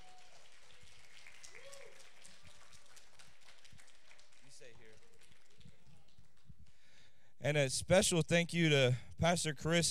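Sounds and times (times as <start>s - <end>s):
round of applause: 0.0s - 7.0s
speech: 7.4s - 9.8s.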